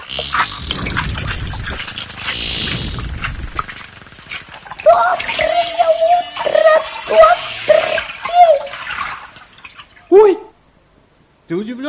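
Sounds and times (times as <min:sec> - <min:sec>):
dolphins calling in water: 0:00.0 - 0:10.5
speech: 0:00.1 - 0:00.9, 0:11.5 - 0:11.8.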